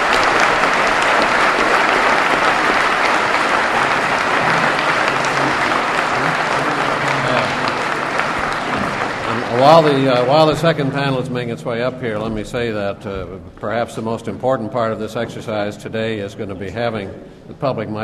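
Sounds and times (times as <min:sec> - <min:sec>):
large crowd applause: 0:00.0 - 0:11.5
speech: 0:09.6 - 0:18.0.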